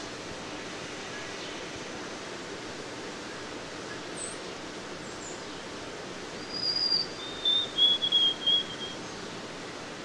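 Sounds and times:
White-throated sparrow song of pure whistles: 6.4s - 9.1s.

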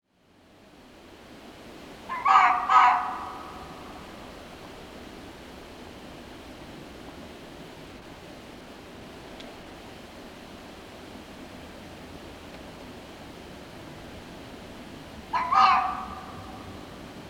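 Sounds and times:
red fox (Vulpes vulpes) giving harsh barking calls: 2.1s - 3.6s, 15.3s - 16.8s.

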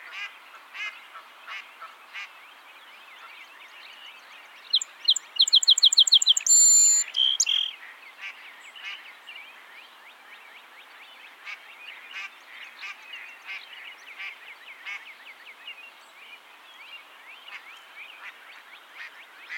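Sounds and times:
song sparrow song: 2.2s - 19.5s
chattering calls: 5.1s - 7.7s.

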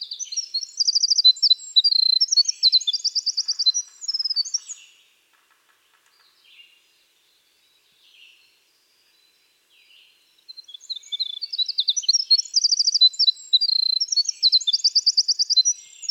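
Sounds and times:
winter wren Troglodytes hiemalis singing trills: 0.0s - 5.0s, 10.4s - 16.0s.

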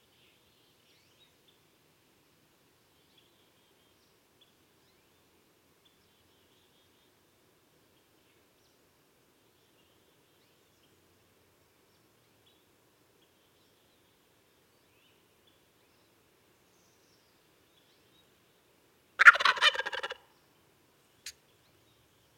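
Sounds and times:
Wild turkey gobble: 19.2s - 20.2s.

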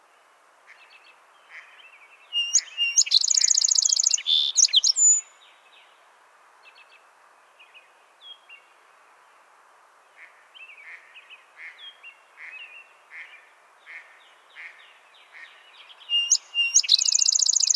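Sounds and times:
other birds chirping: 0.7s - 5.2s, 11.6s - 17.7s
song sparrow singing: 2.3s - 5.3s, 15.8s - 17.7s.

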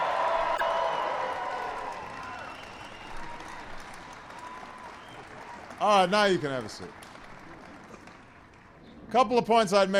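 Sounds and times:
large crowd applauding the New England Patriots at the White House: 0.0s - 8.8s
speech: 5.8s - 7.0s, 9.1s - 9.9s.

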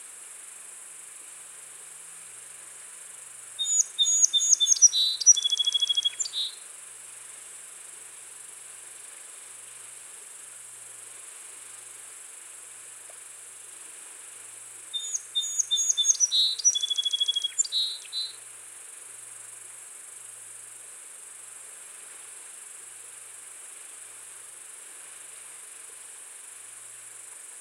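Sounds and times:
song sparrow (Melospiza melodia) singing: 3.6s - 6.5s, 15.0s - 18.3s.

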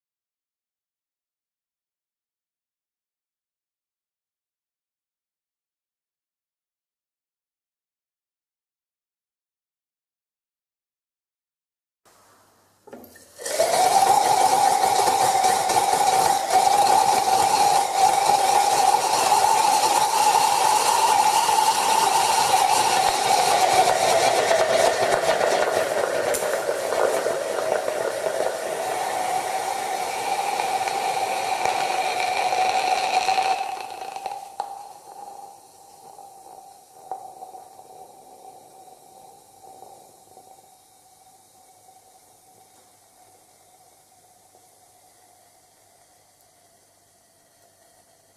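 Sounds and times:
gummy bear screaming in chlorate reaction: 13.2s - 48.3s.

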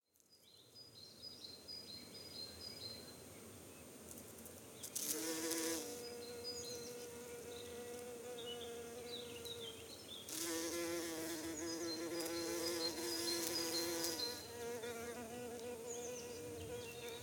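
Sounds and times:
bee buzzing near Cologne Germany: 5.0s - 17.2s.

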